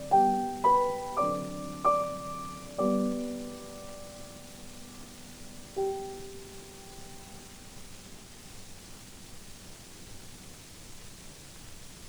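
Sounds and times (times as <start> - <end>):
piano sonata: 0.0 - 8.3.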